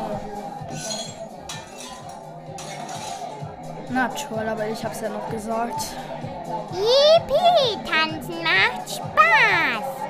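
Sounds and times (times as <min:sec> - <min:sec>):
dishes and cutlery clinking as someone walks over a table: 0:00.6 - 0:03.6
speech: 0:03.9 - 0:09.9.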